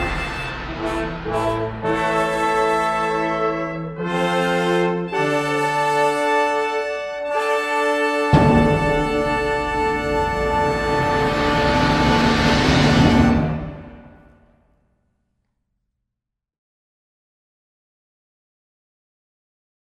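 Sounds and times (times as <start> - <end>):
fanfare: 0.0 - 14.3.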